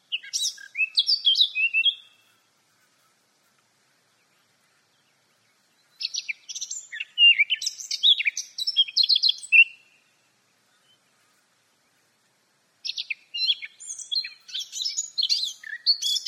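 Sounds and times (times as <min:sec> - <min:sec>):
Eurasian blackcap warbling song: 0:00.0 - 0:02.2, 0:04.2 - 0:10.0, 0:12.8 - 0:16.2.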